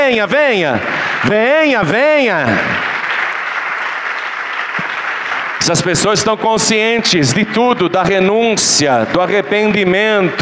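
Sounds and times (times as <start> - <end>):
church congregation clapping: 0.0 - 7.8
speech: 0.1 - 2.8, 5.6 - 10.4.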